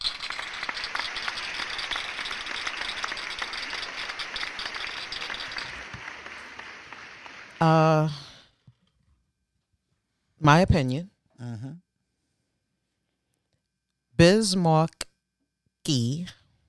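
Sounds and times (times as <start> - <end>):
audience applause: 0.0 - 8.2
speech: 7.6 - 8.2, 10.4 - 11.8, 14.2 - 15.0, 15.9 - 16.4.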